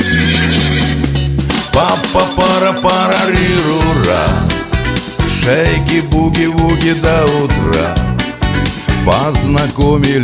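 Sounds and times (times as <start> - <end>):
horse neighing as a sound effect: 0.0 - 1.2
upbeat dance pop song: 1.5 - 10.2
speech: 1.8 - 4.3, 5.5 - 8.1, 9.0 - 10.2.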